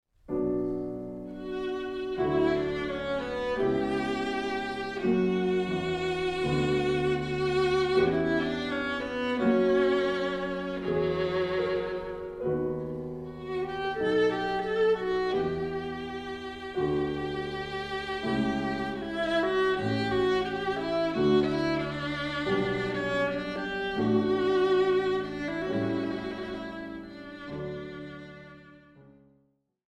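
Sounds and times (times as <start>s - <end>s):
piano: 0.1s - 29.6s
viola: 0.4s - 29.1s.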